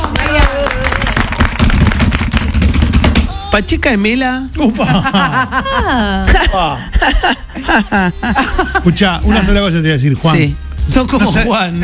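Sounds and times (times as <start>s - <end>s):
applause: 0.0s - 2.9s
speech: 3.6s - 11.8s
laughter: 4.6s - 9.2s.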